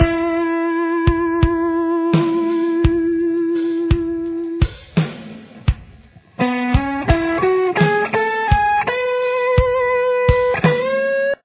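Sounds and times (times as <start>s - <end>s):
lead guitar: 0.0s - 11.4s.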